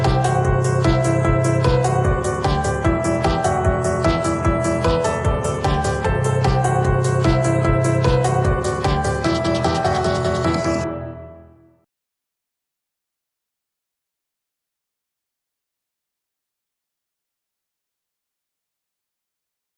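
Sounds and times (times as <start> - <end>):
piano: 0.0 - 11.9.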